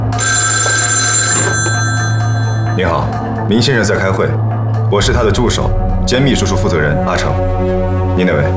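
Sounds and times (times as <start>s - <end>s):
telephone ringing with electronic trill: 0.1s - 3.5s
speech: 2.8s - 8.5s.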